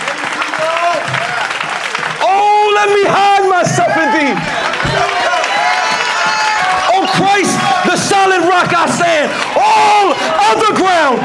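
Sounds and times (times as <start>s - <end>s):
audience clapping: 0.0s - 11.2s
scattered voices and sustained cries: 2.2s - 11.2s
speech: 2.8s - 4.6s, 8.3s - 11.2s.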